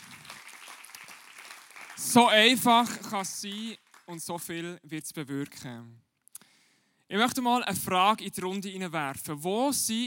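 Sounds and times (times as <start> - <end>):
audience applause: 0.0 - 4.2
speech: 2.0 - 6.0, 7.1 - 10.0.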